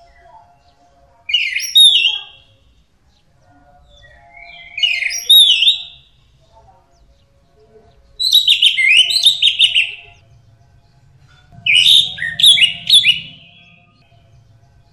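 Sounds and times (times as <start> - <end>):
bird song with whistle and rapid rattling trill: 1.3 - 2.5, 3.9 - 6.2, 8.2 - 10.2, 11.6 - 14.2.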